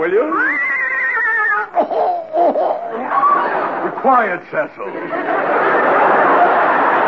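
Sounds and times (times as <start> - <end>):
speech: 0.0 - 0.7, 4.0 - 6.6
big English horse whinnying and nickering: 0.2 - 1.8
laughter: 0.4 - 7.0.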